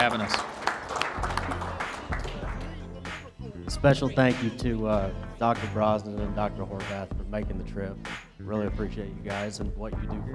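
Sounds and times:
speech: 0:00.0 - 0:00.5, 0:03.8 - 0:10.3
audience applause: 0:00.0 - 0:03.6
laughter: 0:00.0 - 0:10.3.

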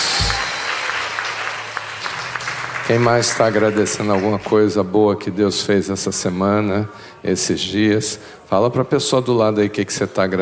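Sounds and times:
round of applause: 0:00.0 - 0:04.7
speech: 0:02.9 - 0:10.4.

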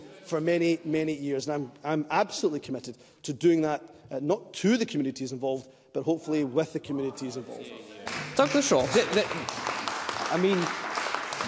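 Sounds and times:
speech: 0:00.3 - 0:09.7, 0:10.3 - 0:10.8
muted applause in parliament chamber: 0:08.0 - 0:11.4.

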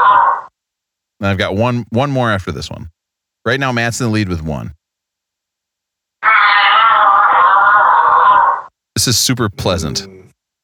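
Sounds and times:
speech: 0:01.2 - 0:04.8, 0:09.0 - 0:10.3
baby giraffe call: 0:06.2 - 0:08.7.

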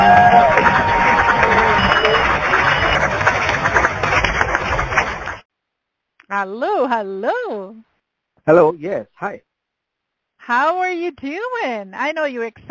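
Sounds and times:
audience round of applause: 0:00.0 - 0:05.4
speech: 0:06.4 - 0:07.8, 0:08.4 - 0:09.5, 0:10.4 - 0:12.6.

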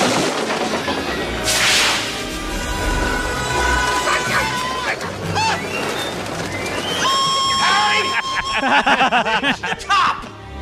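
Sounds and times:
pigeons flapping in a movie scene: 0:00.0 - 0:09.5
whooshes and swipes: 0:01.5 - 0:03.4
laughter: 0:03.6 - 0:10.4.

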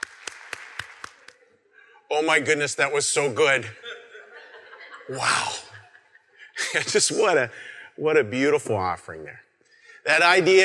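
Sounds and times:
audience applause: 0:00.0 - 0:01.4
speech: 0:02.1 - 0:03.9, 0:05.1 - 0:05.6, 0:06.7 - 0:09.4, 0:10.0 - 0:10.6
laughter: 0:03.4 - 0:07.6.

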